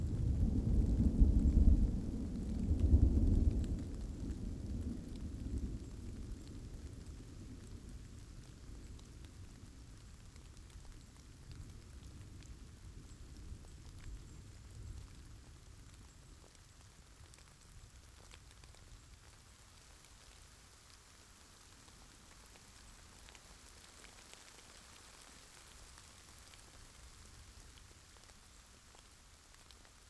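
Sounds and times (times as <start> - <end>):
rain: 0.0 - 30.0
thunder: 0.1 - 6.5.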